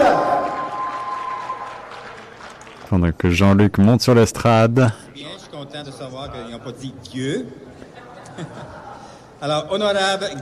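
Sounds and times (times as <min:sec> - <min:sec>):
audience applause: 0:00.0 - 0:03.1
speech: 0:02.9 - 0:07.7, 0:08.4 - 0:08.8, 0:09.4 - 0:10.4
laughter: 0:07.7 - 0:09.3.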